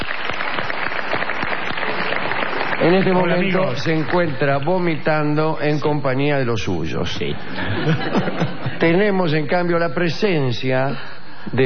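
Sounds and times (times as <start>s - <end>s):
audience applause: 0.0s - 5.1s
speech: 2.8s - 11.6s
laughter: 7.3s - 9.0s.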